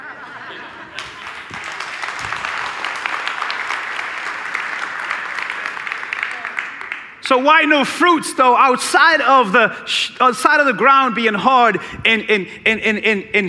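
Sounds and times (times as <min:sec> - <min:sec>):
laughter: 0:00.0 - 0:01.9
crowd clapping: 0:00.8 - 0:07.2
speech: 0:07.3 - 0:13.4.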